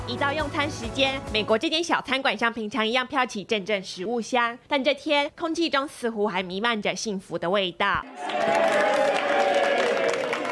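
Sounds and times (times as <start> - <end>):
speech: 0.1 - 9.2
crowd cheering: 8.0 - 10.4.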